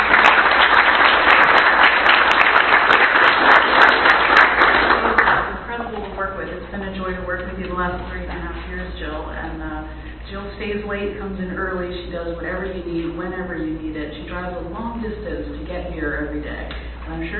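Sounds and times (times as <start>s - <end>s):
audience applause: 0.0s - 5.5s
speech: 10.3s - 17.3s.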